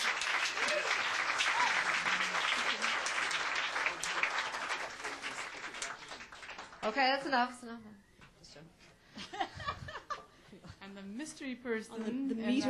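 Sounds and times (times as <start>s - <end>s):
audience applause: 0.0s - 7.0s
speech: 6.9s - 9.8s, 10.6s - 12.6s.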